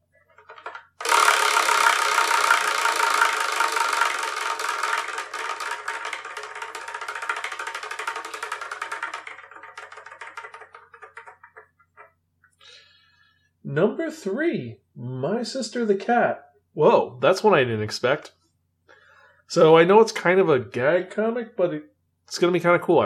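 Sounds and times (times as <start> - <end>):
prize wheel spinning and clicking: 0.4 - 12.1
speech: 13.8 - 18.4, 19.5 - 23.0.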